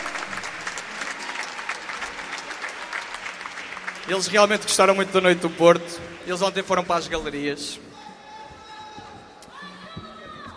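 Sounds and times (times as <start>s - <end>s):
audience applause: 0.0s - 6.9s
speech: 4.1s - 7.9s.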